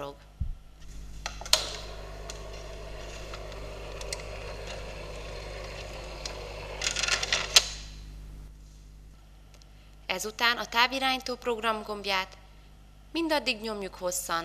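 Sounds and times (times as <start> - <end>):
electric motor starting and spinning: 1.5 - 7.7
speech: 10.2 - 12.4, 13.2 - 14.4.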